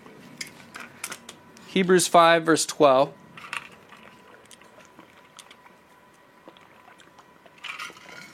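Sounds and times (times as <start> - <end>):
speech: 1.7 - 3.2
drinking water from a bottle: 3.7 - 8.3.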